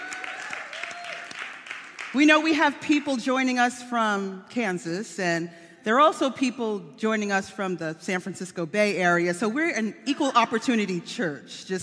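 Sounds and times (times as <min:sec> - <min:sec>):
audience clapping: 0:00.0 - 0:02.2
speech: 0:02.2 - 0:11.8.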